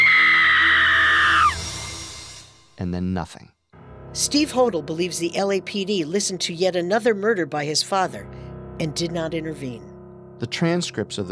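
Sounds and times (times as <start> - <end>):
woman screaming: 0.0 - 1.6
speech: 2.8 - 3.6, 4.2 - 11.3.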